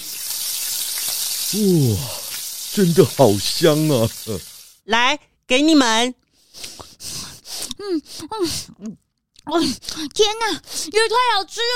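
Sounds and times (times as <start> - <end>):
carrot pancakes frying in sizzling oil: 0.0 - 4.8
brief vocal sound: 1.5 - 2.2
speech: 1.5 - 2.2, 2.8 - 6.7, 7.8 - 11.7.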